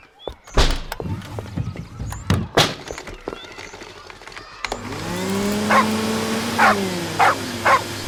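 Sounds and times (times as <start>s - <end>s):
thumps and clatters: 0.2s - 4.8s
running vacuum cleaner: 4.7s - 8.0s
dog barking: 5.7s - 6.0s, 6.6s - 7.9s.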